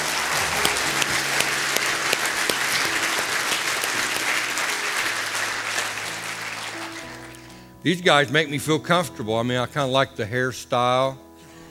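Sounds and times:
audience applause: 0.0s - 7.6s
speech: 7.8s - 11.2s.

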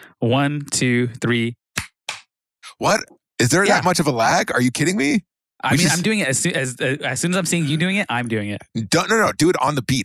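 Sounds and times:
speech: 0.2s - 1.6s, 2.8s - 10.0s
hand clap on the fourth beat: 1.8s - 2.2s.

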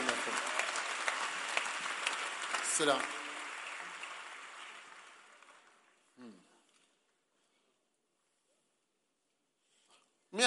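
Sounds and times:
audience applauding: 0.0s - 6.2s
speech: 2.8s - 3.2s.

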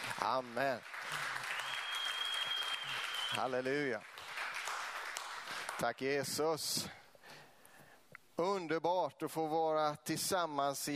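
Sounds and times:
audience applause: 0.0s - 5.8s
speech: 0.2s - 1.0s, 3.3s - 4.2s, 5.8s - 7.0s, 8.4s - 10.9s.

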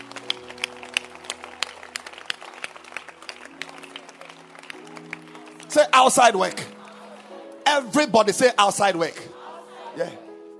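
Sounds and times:
audience clapping hands: 0.0s - 7.9s
speech: 5.7s - 6.7s, 7.8s - 9.2s, 10.0s - 10.2s.

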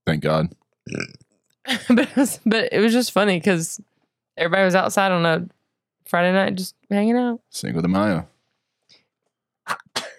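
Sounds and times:
speech: 0.1s - 8.3s
person choking on spit and coughing: 9.7s - 10.1s.

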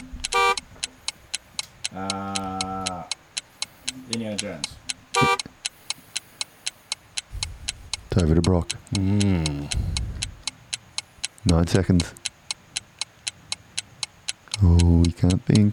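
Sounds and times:
harsh game buzzers: 0.0s - 0.6s, 5.2s - 5.5s
steady ticking clock: 0.0s - 15.7s
speech: 2.0s - 2.3s, 4.1s - 5.4s, 8.2s - 10.0s, 11.4s - 12.2s, 15.2s - 15.7s.

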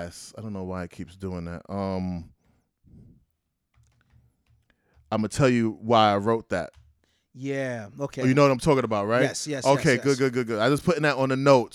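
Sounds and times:
speech: 0.0s - 2.4s, 5.1s - 6.8s, 7.4s - 11.7s
notes being typed on a computer keyboard: 3.7s - 5.1s.

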